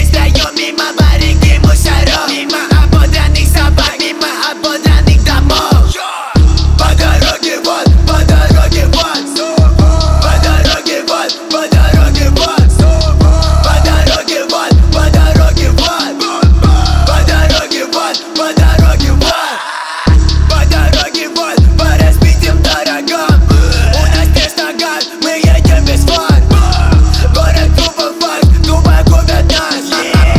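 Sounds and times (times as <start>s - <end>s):
phonk rap music: 0.0s - 30.3s.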